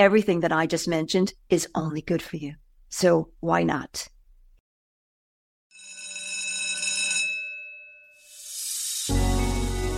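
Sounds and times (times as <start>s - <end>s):
speech: 0.0s - 4.1s
bell ringing: 5.7s - 8.5s.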